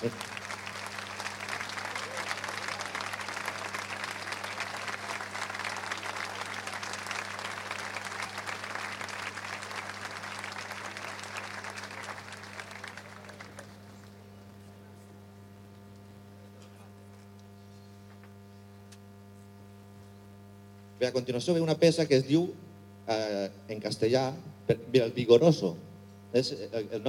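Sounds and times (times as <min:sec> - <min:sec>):
speech: 0:00.0 - 0:00.4, 0:21.0 - 0:27.0
audience applause: 0:00.0 - 0:14.6.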